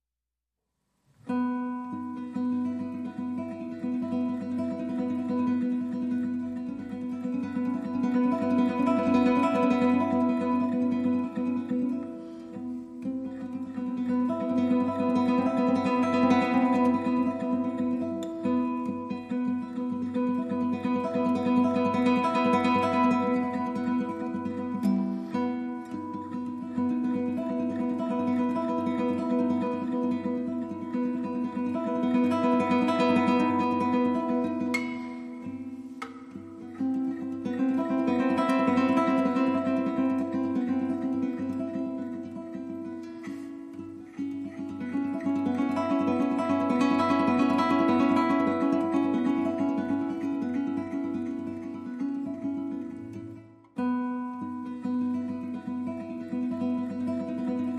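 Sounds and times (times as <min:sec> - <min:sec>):
guitar: 0:01.1 - 0:57.7.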